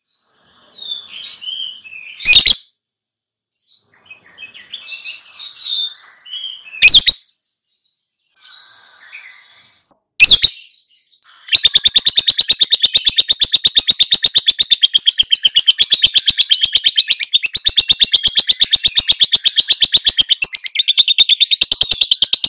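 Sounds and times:
lovebird high chattering twitters: 0:04.1 - 0:07.2, 0:11.3 - 0:22.4.

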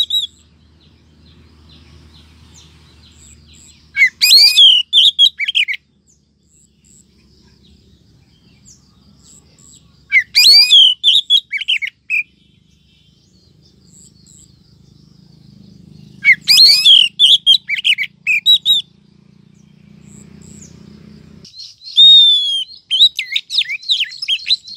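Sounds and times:
Oriental magpie-robin rising whistle: 0:00.0 - 0:00.4, 0:03.6 - 0:05.8, 0:10.1 - 0:12.3, 0:16.2 - 0:19.0, 0:21.5 - 0:24.7.

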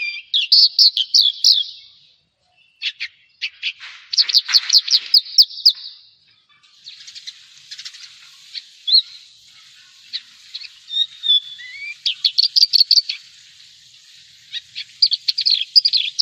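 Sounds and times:
Javan bush lark song: 0:00.0 - 0:16.2.

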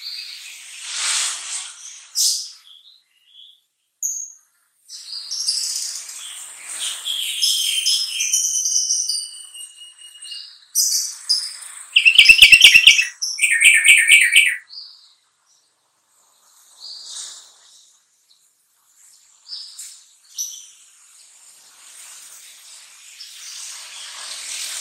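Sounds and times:
sooty-headed bulbul chattering rattle: 0:12.0 - 0:14.6
sooty-headed bulbul warbling: 0:12.0 - 0:14.6.

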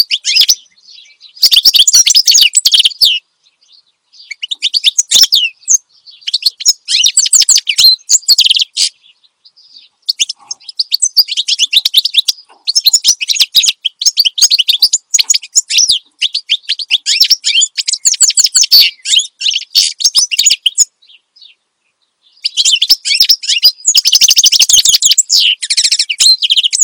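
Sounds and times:
finch twittering song: 0:00.0 - 0:26.8.

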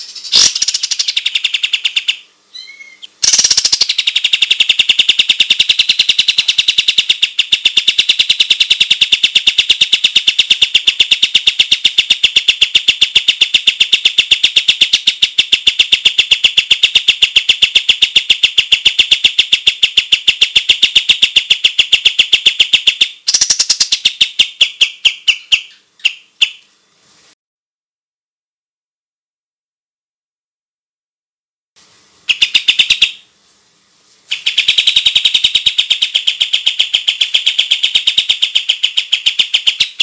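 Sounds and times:
white-shouldered triller calling: 0:00.0 - 0:26.6, 0:32.2 - 0:33.2, 0:34.3 - 0:40.0.

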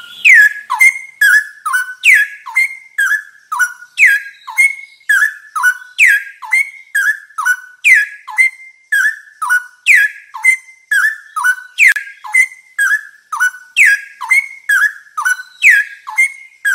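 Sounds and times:
straw-headed bulbul singing: 0:00.0 - 0:16.7.

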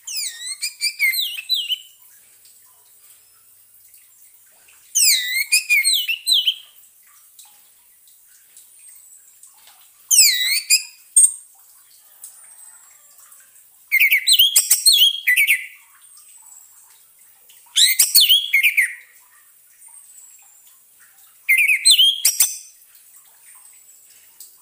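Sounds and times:
orange-headed thrush song of whistled and chirping notes: 0:00.1 - 0:01.9, 0:05.0 - 0:06.6, 0:13.9 - 0:15.8, 0:17.8 - 0:19.0, 0:21.5 - 0:22.7.

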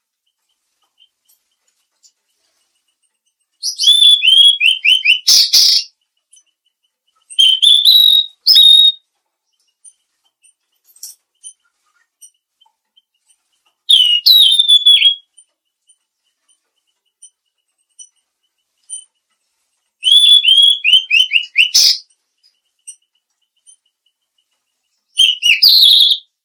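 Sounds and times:
mangrove blue flycatcher whistling: 0:03.6 - 0:05.9, 0:07.4 - 0:09.0, 0:13.9 - 0:15.3, 0:20.0 - 0:22.1, 0:25.2 - 0:26.3.

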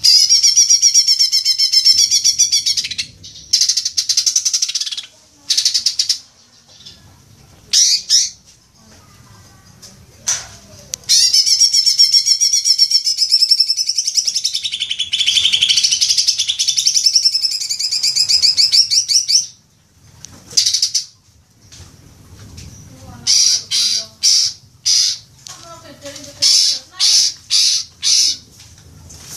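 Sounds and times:
leafbird song: 0:00.0 - 0:07.0, 0:07.7 - 0:08.4, 0:11.0 - 0:19.6, 0:22.7 - 0:25.3, 0:26.4 - 0:28.4.

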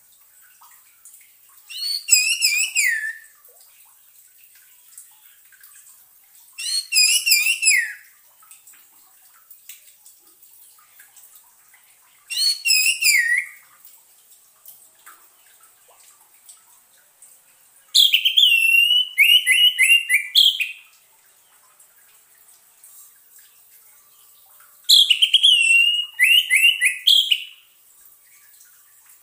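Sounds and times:
orange-headed thrush song: 0:01.7 - 0:03.3, 0:06.6 - 0:08.0, 0:12.3 - 0:13.6, 0:18.0 - 0:20.8, 0:24.9 - 0:27.6.

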